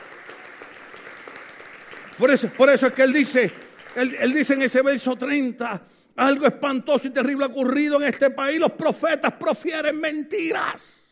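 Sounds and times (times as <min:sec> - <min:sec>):
crowd applauding: 0:00.0 - 0:05.3
speech: 0:02.2 - 0:11.0.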